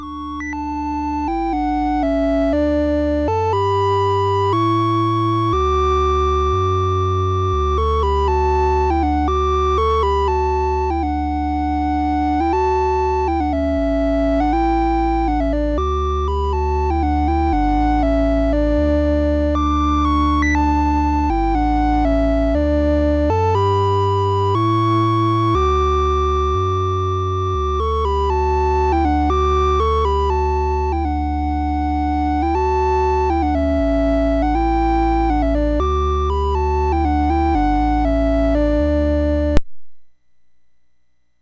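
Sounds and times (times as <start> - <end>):
Christmas music on MOS6581R3 sound chip: 0.0 - 39.6.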